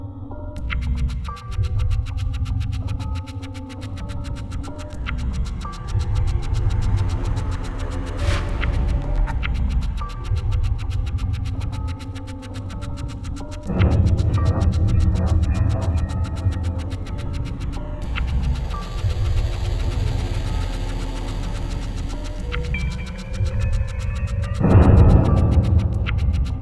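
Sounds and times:
ambient beats: 0.6s - 26.5s.

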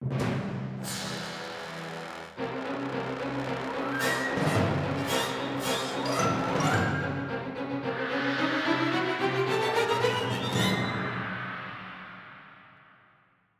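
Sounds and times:
battle intro music: 0.1s - 10.7s.

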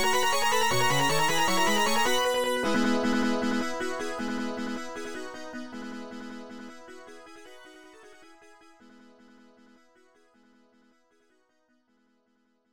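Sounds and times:
arcade bonus stage background music: 0.0s - 8.6s.

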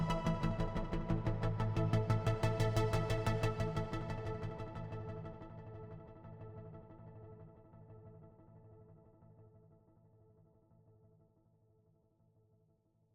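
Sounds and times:
bass: 0.0s - 7.2s.

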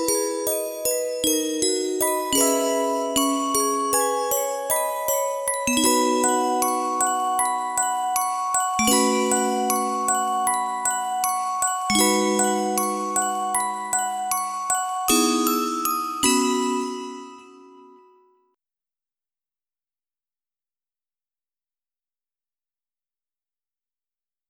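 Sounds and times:
music box melody: 0.0s - 18.3s.

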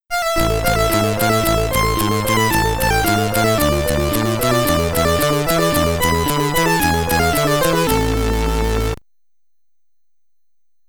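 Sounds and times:
Commodore 64 SID stereo chiptune classical piece: 0.1s - 9.0s.

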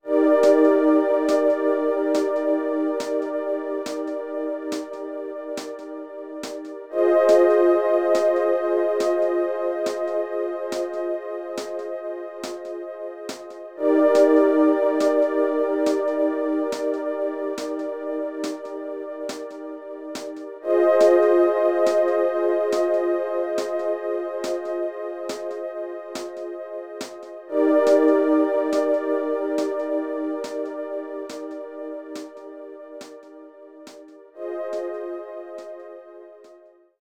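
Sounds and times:
ambient music: 0.0s - 36.9s.

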